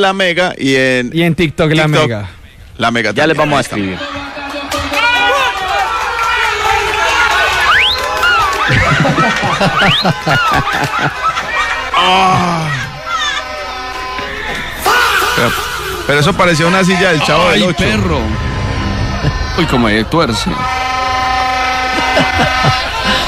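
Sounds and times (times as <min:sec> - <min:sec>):
speech: 0:00.0 - 0:04.3, 0:08.7 - 0:11.3, 0:12.0 - 0:12.9, 0:15.4 - 0:18.5, 0:19.6 - 0:20.8, 0:22.4 - 0:23.2
crowd cheering a football goal: 0:03.4 - 0:23.2
bursts of laughter: 0:08.6 - 0:12.4, 0:21.9 - 0:23.2.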